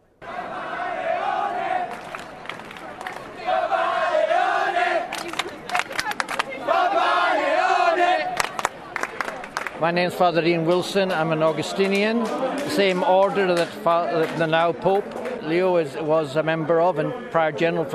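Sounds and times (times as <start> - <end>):
large crowd in St. Peter's Square cheering and chanting after the papal conclave: 0.2 - 17.9
crowd clapping in St. Peter's Square: 1.2 - 15.5
speech: 9.8 - 17.9.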